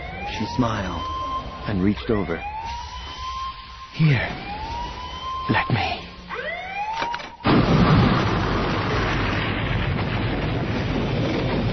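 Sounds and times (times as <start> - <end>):
speech: 0.4 - 2.6, 4.0 - 4.6, 5.5 - 6.0
large explosion: 7.4 - 11.7.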